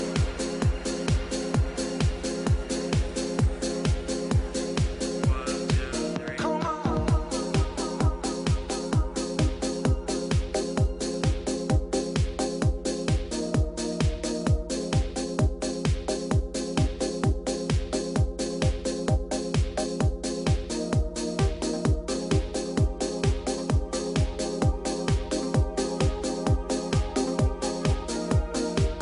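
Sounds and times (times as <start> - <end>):
chill techno music: 0.0 - 29.0.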